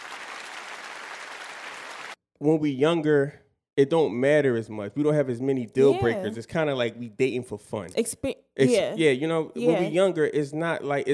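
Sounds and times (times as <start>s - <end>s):
applause: 0.0s - 2.2s
speech: 2.4s - 11.1s.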